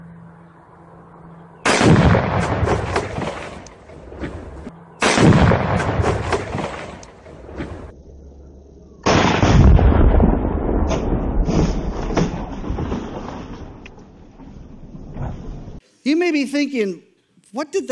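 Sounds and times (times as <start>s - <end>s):
explosions of dynamite struck by gunfire in Texas: 1.6s - 7.9s, 9.0s - 13.8s
speech: 16.1s - 17.9s.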